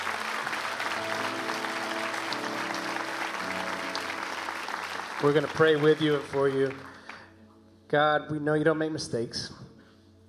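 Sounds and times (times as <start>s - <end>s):
audience clapping: 0.0s - 7.3s
speech: 5.2s - 6.9s, 7.9s - 9.6s.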